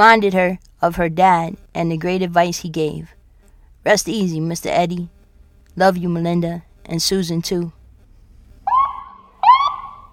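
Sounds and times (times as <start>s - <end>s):
speech: 0.0s - 3.2s, 3.8s - 5.2s, 5.8s - 7.8s
fire station alarm: 8.7s - 10.1s.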